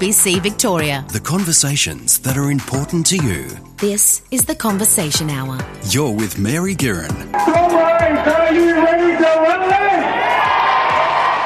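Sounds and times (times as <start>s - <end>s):
speech: 0.0s - 10.2s
striking public school teachers cheering at a strike rally in Melbourne: 7.4s - 11.4s.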